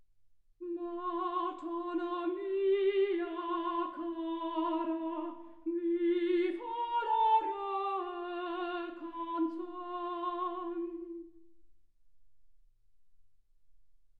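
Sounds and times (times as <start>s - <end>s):
soprano singing: 0.6s - 11.4s.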